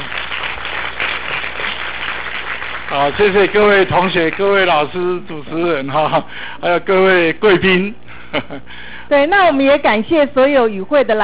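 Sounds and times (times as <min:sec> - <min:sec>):
warm audience applause thanking an academician after a lecture: 0:00.0 - 0:04.8
speech: 0:02.9 - 0:11.2.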